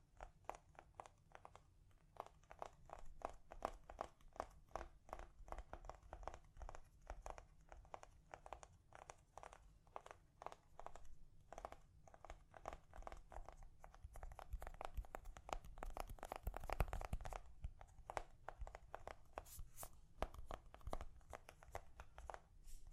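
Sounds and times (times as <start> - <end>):
gentle tapping: 2.5 - 22.9.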